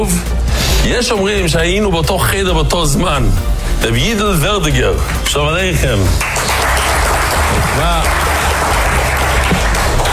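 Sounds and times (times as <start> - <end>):
speech: 0.0 - 6.4, 7.8 - 8.4
applause: 6.0 - 10.1.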